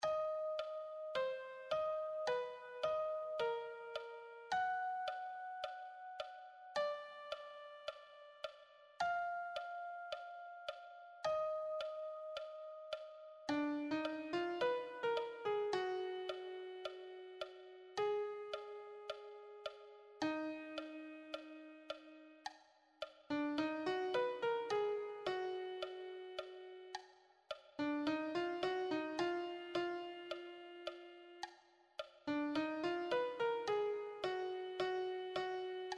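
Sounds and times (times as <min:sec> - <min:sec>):
lead piano: 0:00.0 - 0:22.5, 0:23.3 - 0:27.0, 0:27.8 - 0:31.5, 0:32.3 - 0:35.9.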